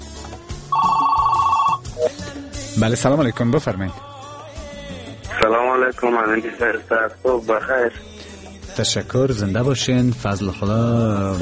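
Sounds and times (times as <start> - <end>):
telephone ringing for an incoming call on a call-in programme: 0.7 - 2.1
speech: 2.8 - 4.1, 5.4 - 8.1, 8.8 - 11.4.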